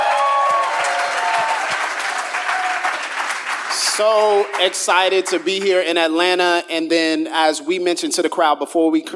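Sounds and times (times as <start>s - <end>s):
whistles and cheers: 0.0s - 3.1s
crowd applauding: 0.0s - 6.2s
speech: 4.0s - 9.1s.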